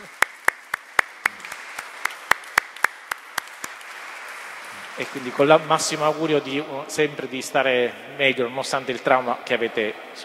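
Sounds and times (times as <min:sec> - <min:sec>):
applause in a church: 0:00.0 - 0:06.6
speech: 0:05.0 - 0:10.2.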